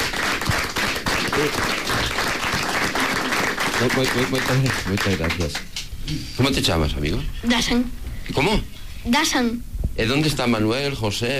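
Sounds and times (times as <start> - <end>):
audience applause: 0.0 - 5.7
speech: 1.4 - 1.8, 3.8 - 11.3.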